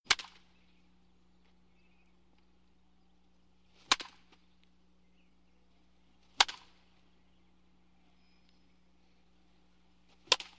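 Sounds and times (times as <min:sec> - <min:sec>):
wooden baseball bat: 0:03.7 - 0:04.5, 0:06.2 - 0:06.8, 0:10.1 - 0:10.5.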